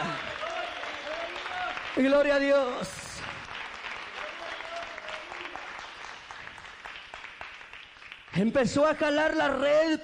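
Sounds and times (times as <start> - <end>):
audience applause: 0.0 - 8.6
speech: 2.0 - 3.0, 8.4 - 10.0.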